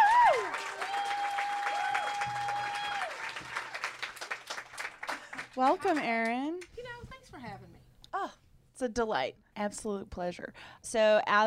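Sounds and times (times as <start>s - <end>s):
audience applauding to welcome a guest onto a stage: 0.0s - 6.4s
speech: 5.6s - 6.7s, 7.3s - 11.4s.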